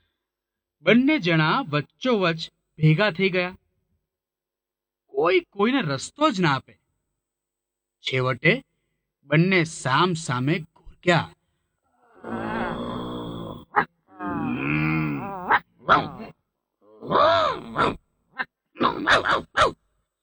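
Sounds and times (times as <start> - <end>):
speech: 0.8 - 3.6, 5.2 - 6.8, 8.0 - 8.7, 9.3 - 11.4, 15.9 - 16.2, 18.8 - 19.8
voice imitating two dogs growling and snarling: 12.0 - 19.8.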